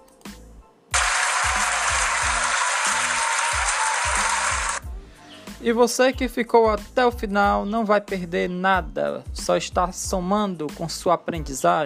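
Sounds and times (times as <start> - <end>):
round of applause: 1.0 - 4.8
speech: 5.6 - 11.8.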